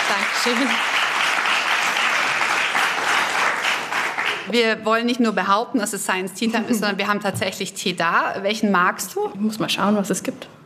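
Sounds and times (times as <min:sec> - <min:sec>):
studio audience applause: 0:00.0 - 0:04.6
speech: 0:00.1 - 0:01.0, 0:04.5 - 0:10.6.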